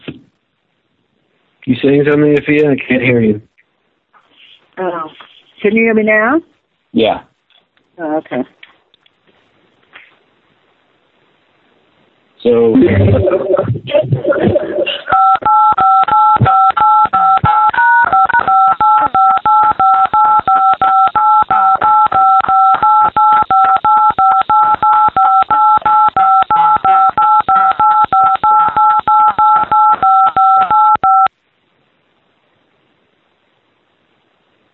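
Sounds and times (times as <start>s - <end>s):
speech: 1.6s - 3.5s, 4.8s - 7.3s, 8.0s - 8.6s, 12.4s - 15.4s
telephone keypad dual-tone dialing tones: 15.1s - 31.3s.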